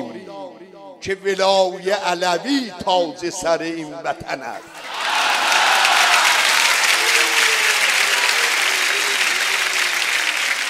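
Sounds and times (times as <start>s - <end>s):
speech: 1.0s - 5.0s
audience applause: 4.8s - 10.6s.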